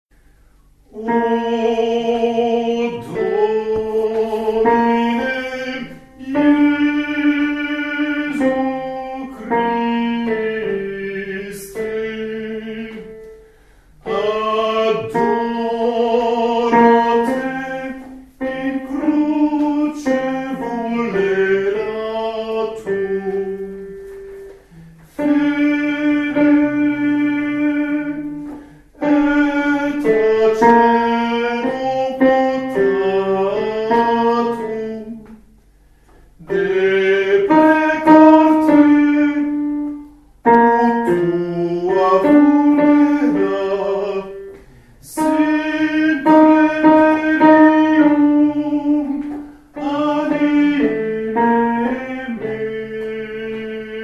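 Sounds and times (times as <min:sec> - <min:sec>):
tenors singing: 0:00.9 - 0:54.0.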